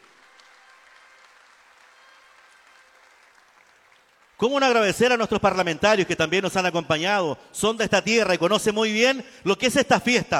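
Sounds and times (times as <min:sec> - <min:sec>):
audience applause: 0:00.0 - 0:04.8
speech: 0:04.4 - 0:10.3.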